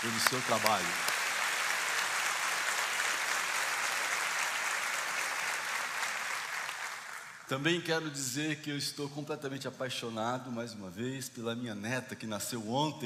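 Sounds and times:
speech: 0.0s - 1.1s, 7.5s - 13.0s
applause: 0.0s - 7.5s.

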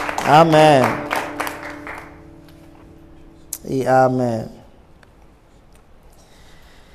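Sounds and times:
audience applause: 0.0s - 2.7s
speech: 0.3s - 1.0s, 3.6s - 4.6s.

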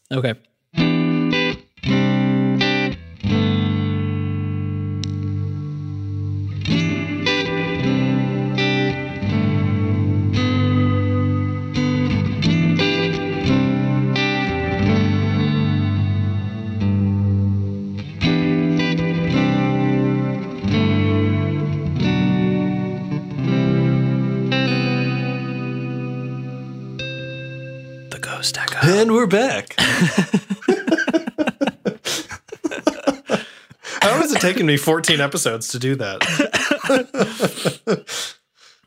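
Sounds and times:
speech: 0.1s - 1.0s, 29.2s - 30.5s, 34.4s - 38.0s
distorted electric guitar through an effects pedal: 0.8s - 28.1s
laughter: 29.8s - 34.9s, 36.2s - 38.3s.

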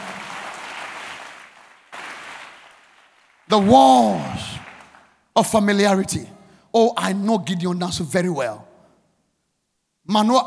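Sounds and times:
audience clapping hands: 0.0s - 5.3s
speech: 3.5s - 4.5s, 5.4s - 8.7s, 10.0s - 10.4s.

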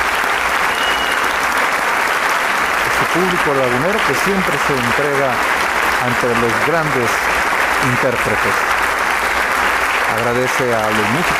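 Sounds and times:
concert audience applause: 0.0s - 11.3s
speech: 3.1s - 8.7s, 10.2s - 11.3s.

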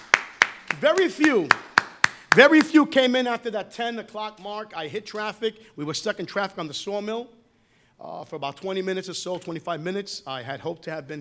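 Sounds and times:
audience clapping hands: 0.0s - 2.8s
speech: 0.8s - 1.7s, 2.3s - 7.4s, 8.0s - 11.2s.

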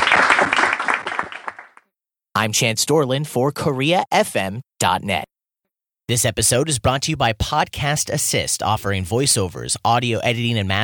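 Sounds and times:
round of applause: 0.0s - 1.9s
speech: 2.4s - 5.4s, 6.1s - 10.8s.

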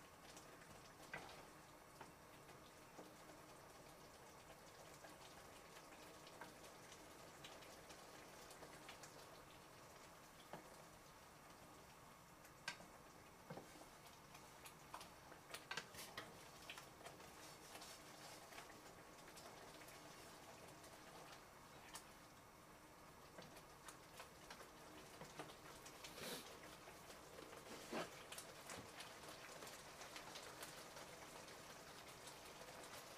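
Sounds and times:
tomato sauce pasta sizzling: 0.0s - 33.1s
constant watery hiss: 26.1s - 26.5s.

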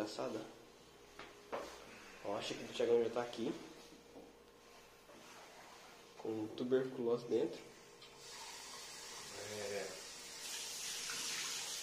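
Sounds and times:
speech: 0.1s - 0.6s, 2.2s - 3.7s, 6.2s - 7.7s
water running from a faucet: 8.2s - 11.8s.

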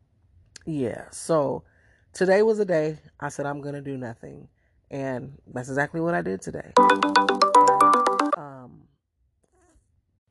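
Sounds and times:
speech: 0.7s - 7.4s
phone ringtone ringing: 6.8s - 8.4s.

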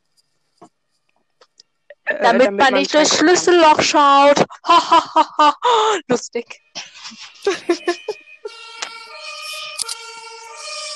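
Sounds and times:
speech: 2.2s - 6.6s
laughter: 4.5s - 6.1s, 6.8s - 9.6s
fire engine siren: 7.5s - 10.9s.

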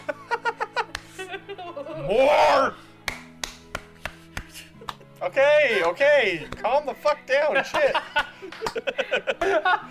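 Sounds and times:
laughter: 0.0s - 2.2s, 7.5s - 9.8s
hands clapping: 0.8s - 1.2s, 3.0s - 6.8s, 7.7s - 9.6s
speech: 2.1s - 2.8s, 5.2s - 9.8s.

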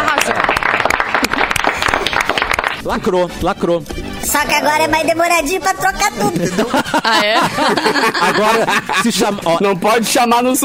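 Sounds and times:
audience applause: 0.0s - 2.8s
speech: 2.8s - 10.6s
laughter: 6.2s - 9.8s.

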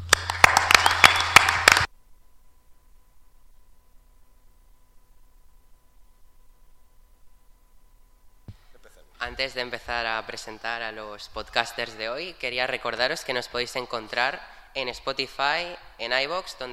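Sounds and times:
applause: 0.0s - 1.9s
speech: 9.3s - 16.7s.

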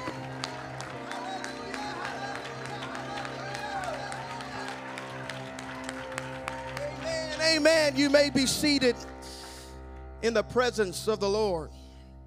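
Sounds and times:
audience clapping and cheering in praise: 0.0s - 10.4s
speech: 7.5s - 9.1s, 10.2s - 11.8s.

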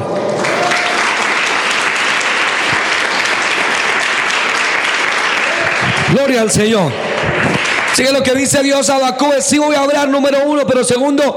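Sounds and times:
audience applause: 0.0s - 8.8s
speech: 6.1s - 11.3s.

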